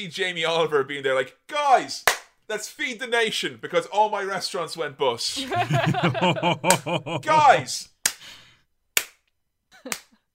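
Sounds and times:
speech: 0:00.0 - 0:08.4
hand claps: 0:02.0 - 0:02.3, 0:06.6 - 0:07.0, 0:08.0 - 0:08.3, 0:09.0 - 0:10.2
laughter: 0:05.4 - 0:07.8.

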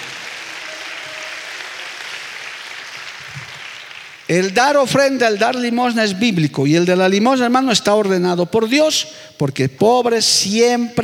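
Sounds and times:
audience applause: 0:00.0 - 0:04.6
speech: 0:04.3 - 0:11.0.

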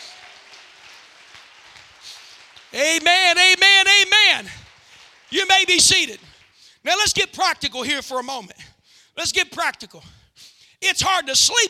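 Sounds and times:
crowd clapping hands: 0:00.0 - 0:07.2
speech: 0:02.7 - 0:04.6, 0:05.3 - 0:08.5, 0:09.2 - 0:10.2, 0:10.8 - 0:11.6.

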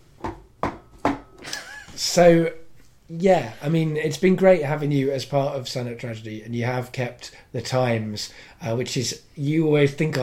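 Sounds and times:
knocking on wood: 0:00.2 - 0:01.3
speech: 0:02.0 - 0:10.2.

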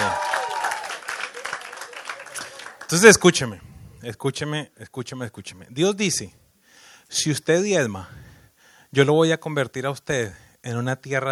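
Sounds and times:
audience applause: 0:00.0 - 0:03.2
speech: 0:02.9 - 0:06.4, 0:07.1 - 0:08.2, 0:08.9 - 0:11.2.

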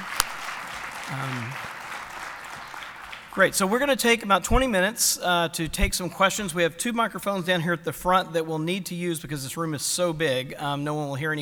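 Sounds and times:
short voiced cheer: 0:00.0 - 0:03.4
crowd applauding: 0:00.0 - 0:04.2
speech: 0:01.1 - 0:01.8, 0:03.4 - 0:11.4.

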